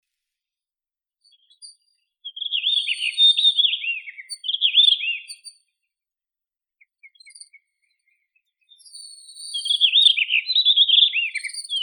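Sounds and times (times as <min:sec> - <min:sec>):
Blue rock thrush singing: 0:02.3 - 0:05.4, 0:08.7 - 0:11.8.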